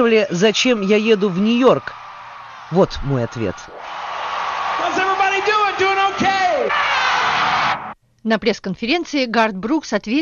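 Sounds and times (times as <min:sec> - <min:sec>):
speech: 0:00.0 - 0:02.0, 0:02.7 - 0:04.0, 0:08.2 - 0:10.1
huge concert crowd roaring: 0:00.0 - 0:08.0
loud individual yells and whoops: 0:00.6 - 0:07.9.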